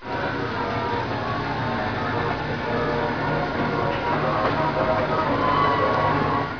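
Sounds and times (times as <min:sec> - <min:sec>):
people: 0:01.2 - 0:06.5.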